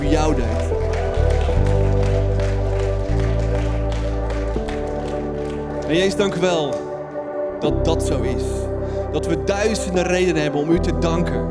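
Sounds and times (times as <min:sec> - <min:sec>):
audience applause for Jesus: 0:00.0 - 0:06.3
speech: 0:05.9 - 0:06.8, 0:07.6 - 0:11.4.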